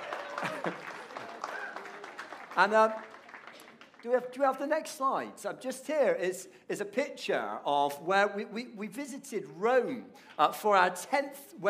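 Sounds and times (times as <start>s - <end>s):
voices and whoops: 0.0s - 2.1s
audience round of applause: 0.0s - 4.2s
speech: 0.4s - 0.9s, 2.6s - 3.1s, 4.0s - 11.6s.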